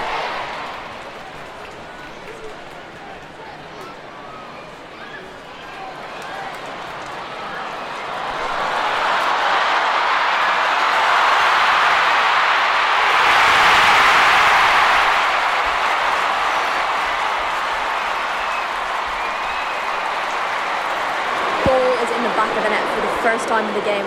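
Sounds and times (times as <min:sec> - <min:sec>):
football stadium crowd booing: 0:00.0 - 0:24.0.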